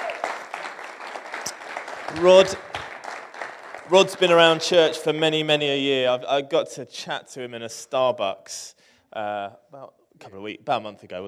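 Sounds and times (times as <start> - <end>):
audience applause: 0.0 - 5.0
speech: 2.1 - 2.7, 3.9 - 11.2.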